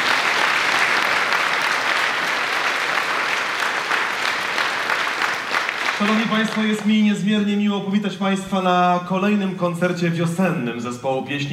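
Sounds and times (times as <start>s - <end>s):
audience applause after a polonaise performance: 0.0s - 7.5s
speech: 6.0s - 11.5s.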